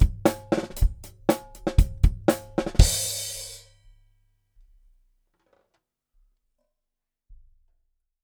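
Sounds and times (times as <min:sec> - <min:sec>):
drums in a rough mix: 0:00.0 - 0:03.8.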